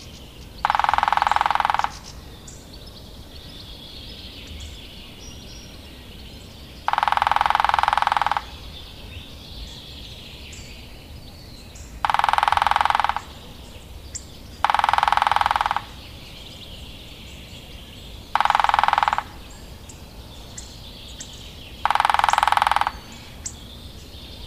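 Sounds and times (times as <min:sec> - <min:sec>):
Lesser spotted woodpecker giving high thin kee notes: 0:00.0 - 0:24.4.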